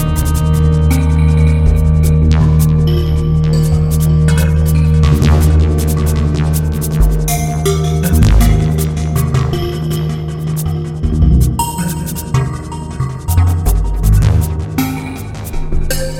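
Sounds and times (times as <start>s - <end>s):
electronic music: 0.0s - 16.1s.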